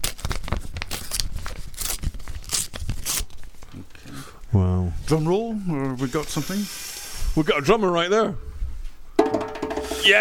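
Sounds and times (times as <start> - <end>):
paper envelope being torn open: 0.0 - 3.4
speech: 4.5 - 6.8, 7.4 - 8.5.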